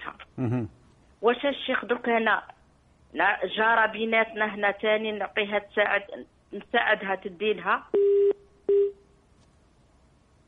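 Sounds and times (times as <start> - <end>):
speech: 0.4 - 8.2
telephone busy tone: 8.0 - 9.0.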